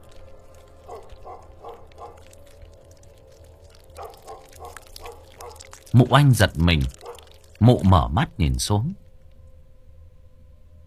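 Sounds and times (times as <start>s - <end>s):
wet smacking chewing at the foot of a bed: 0.0s - 8.1s
low steady hum: 0.0s - 10.8s
speech: 6.0s - 7.0s, 7.6s - 9.0s.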